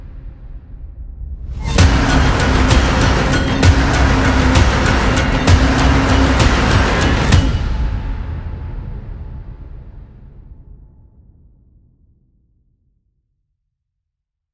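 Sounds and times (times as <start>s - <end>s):
epic hybrid horror lullaby music: 1.8s - 8.5s.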